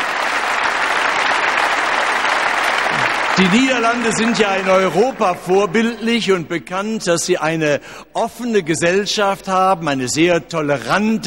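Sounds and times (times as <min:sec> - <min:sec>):
audience applause: 0:00.0 - 0:05.5
speech: 0:03.4 - 0:11.2.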